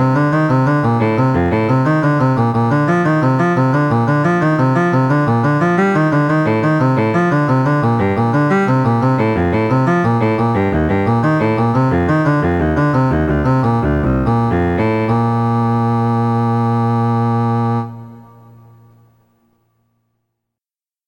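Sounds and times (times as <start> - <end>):
cello playing etudes: 0.0 - 18.8.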